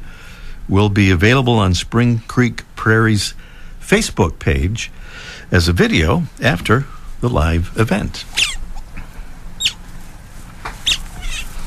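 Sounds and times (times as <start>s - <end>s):
speech: 0.7s - 8.4s
egg hatching peeps or cracks: 8.2s - 9.0s, 9.6s - 9.9s, 10.7s - 11.6s.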